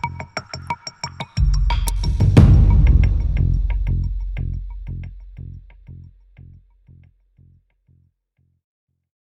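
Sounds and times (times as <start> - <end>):
distorted echoes: 1.4 - 6.5.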